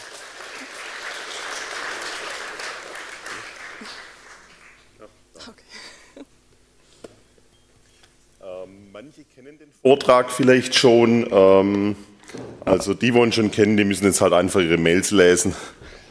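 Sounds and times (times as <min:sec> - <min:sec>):
audience clapping for a conference speaker: 0:00.0 - 0:05.2
speech: 0:03.8 - 0:04.0, 0:09.0 - 0:15.8.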